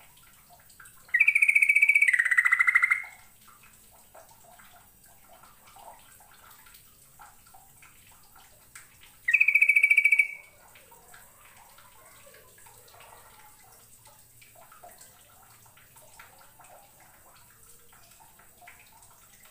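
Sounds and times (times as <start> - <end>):
bird rapid pulsed trill: 1.2 - 3.1, 9.3 - 10.4.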